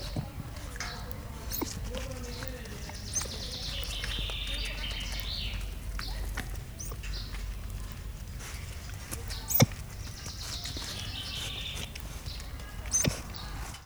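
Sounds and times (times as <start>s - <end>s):
bird at a zoo: 0.0s - 13.8s
coati at a zoo: 0.0s - 13.8s.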